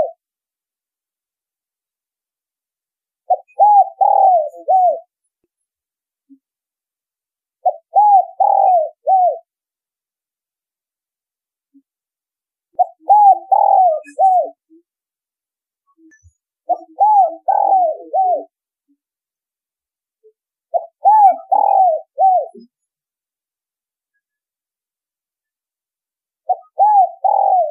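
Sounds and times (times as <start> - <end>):
spotted dove cooing: 3.3 - 5.1, 7.6 - 9.5, 12.8 - 14.6, 16.7 - 18.5, 20.7 - 22.7, 26.5 - 27.6.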